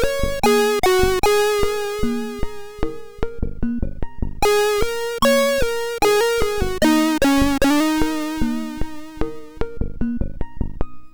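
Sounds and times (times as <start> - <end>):
MOS6581R4 SID chip music: 0.0 - 3.4, 4.4 - 9.7.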